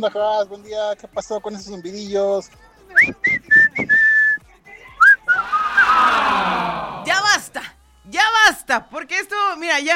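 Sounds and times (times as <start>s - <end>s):
speech: 0.0s - 3.9s, 6.4s - 9.9s
person whistling: 3.0s - 4.4s, 5.0s - 5.9s.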